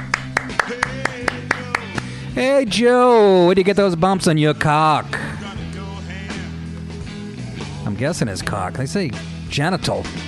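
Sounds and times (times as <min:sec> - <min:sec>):
round of applause hand claps: 0:00.0 - 0:02.2
speech: 0:02.4 - 0:05.2, 0:07.8 - 0:10.2.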